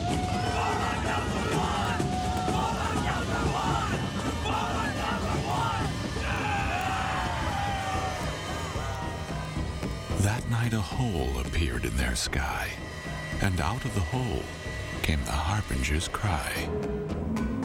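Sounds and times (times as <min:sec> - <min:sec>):
crowd gathering and yelling: 0:00.0 - 0:10.4
speech: 0:10.6 - 0:12.8, 0:13.4 - 0:17.5.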